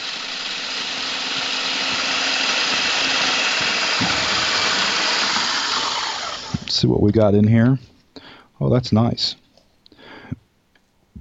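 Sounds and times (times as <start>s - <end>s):
food processor grinding vanilla wafers: 0.0s - 6.7s
speech: 6.8s - 7.9s, 8.6s - 9.4s.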